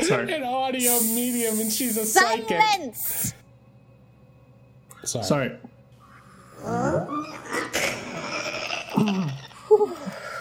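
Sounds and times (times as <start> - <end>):
speech: 0.1 - 3.4, 5.0 - 5.7, 6.6 - 8.0
person clearing throat: 7.4 - 9.6.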